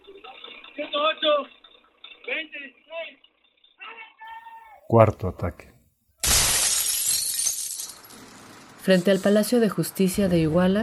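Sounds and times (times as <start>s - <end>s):
speech: 1.0s - 1.6s, 2.3s - 3.2s, 4.9s - 5.7s, 8.8s - 10.8s
police smashing Estrella de Oro bus windows in Iguala: 6.2s - 9.2s.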